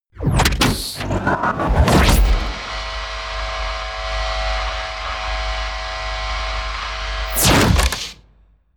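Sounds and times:
promo synth pad: 0:01.0 - 0:07.6.

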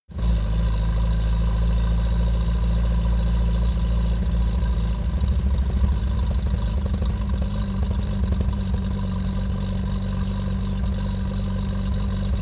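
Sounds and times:
UAZ 469 car engine idling: 0:00.2 - 0:12.4.

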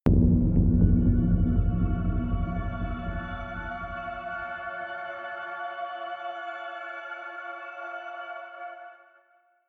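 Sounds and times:
drones: 0:00.1 - 0:04.7
horror shimmer: 0:00.1 - 0:04.9.

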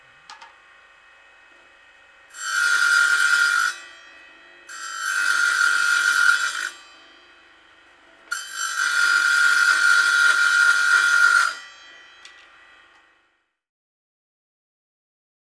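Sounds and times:
chainsaw: 0:02.3 - 0:03.9, 0:04.6 - 0:06.9, 0:08.3 - 0:11.6.

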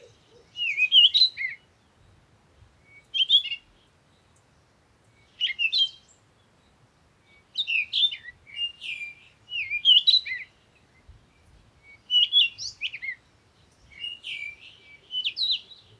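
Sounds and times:
African bush morning birds: 0:00.0 - 0:15.9.

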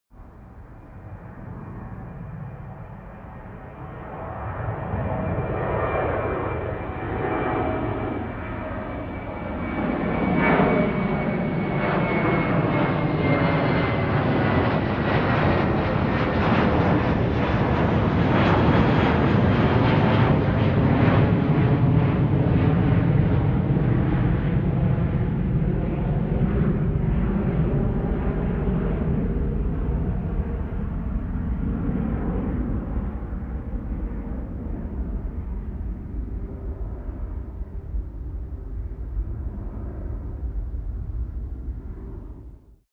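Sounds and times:
tonal plane flyby and landing: 0:00.2 - 0:42.8.

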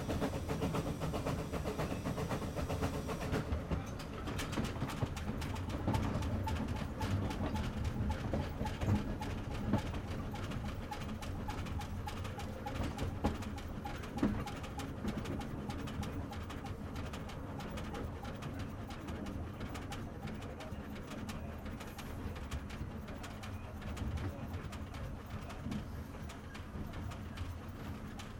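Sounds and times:
old train cabin interior: 0:00.0 - 0:28.3.

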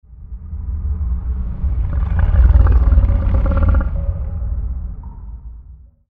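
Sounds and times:
growling: 0:01.7 - 0:04.4.

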